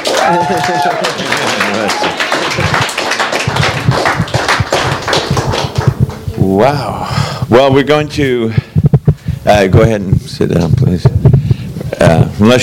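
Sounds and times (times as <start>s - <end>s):
audience clapping welcoming a speaker at a church revival conference: 0.0s - 6.8s
speech: 0.3s - 4.4s, 6.4s - 8.6s, 9.5s - 11.2s, 12.0s - 12.6s.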